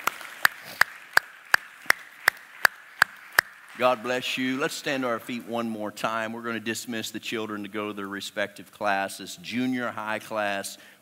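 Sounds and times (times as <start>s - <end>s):
audience clapping hands: 0.0s - 5.0s
speech: 3.8s - 11.0s.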